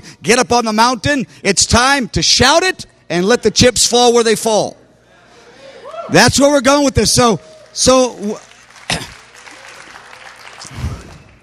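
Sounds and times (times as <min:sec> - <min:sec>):
speech: 0:00.2 - 0:04.8, 0:06.1 - 0:09.0
loud whoop: 0:05.7 - 0:06.2
crowd cheering: 0:07.2 - 0:11.4
audience clapping: 0:07.4 - 0:11.4.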